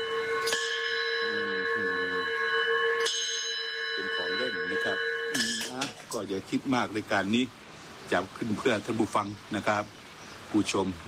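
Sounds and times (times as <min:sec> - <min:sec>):
metal school bell struck: 0:00.0 - 0:06.3
speech: 0:06.2 - 0:11.0.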